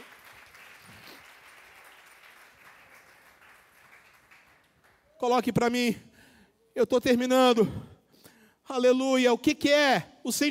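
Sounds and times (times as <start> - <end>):
audience applause: 0.0 - 5.2
speech: 5.2 - 6.1, 6.8 - 7.9, 8.7 - 10.4.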